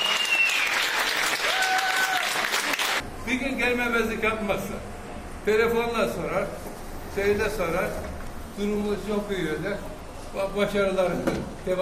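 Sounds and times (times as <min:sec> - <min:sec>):
applause for discharged hospital patient: 0:00.0 - 0:03.0
speech: 0:03.3 - 0:06.6, 0:07.2 - 0:11.8.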